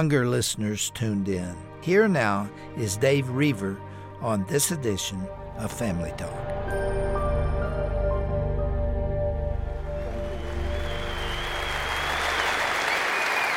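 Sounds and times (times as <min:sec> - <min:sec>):
speech: 0:00.0 - 0:06.8
musical tone: 0:05.0 - 0:12.6
crowd applause: 0:09.7 - 0:13.5.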